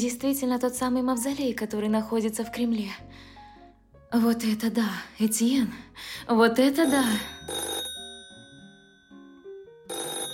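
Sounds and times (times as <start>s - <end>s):
speech: 0.0s - 3.3s, 4.1s - 7.7s
telephone ringing: 6.7s - 10.3s.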